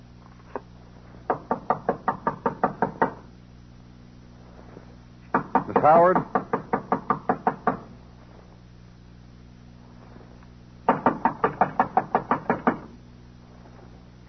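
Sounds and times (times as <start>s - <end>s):
knocking on a door: 1.3s - 3.3s, 5.3s - 7.9s, 10.9s - 12.9s
speech: 5.8s - 6.4s.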